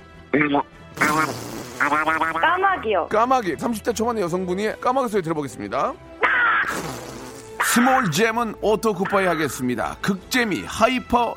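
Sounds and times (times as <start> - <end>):
speech: 0.4 - 7.0, 7.7 - 11.3
person imitating duck quacks: 1.0 - 2.6, 6.2 - 7.9.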